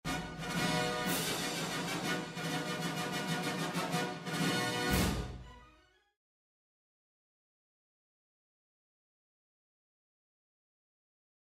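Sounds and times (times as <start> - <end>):
Mexican trumpet: 0.0 - 6.0.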